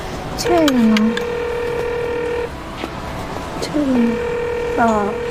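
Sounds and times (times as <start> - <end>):
steady electronic phone dialing tone: 0.4 - 2.5, 3.6 - 5.2
speech: 0.5 - 1.2, 4.8 - 5.2.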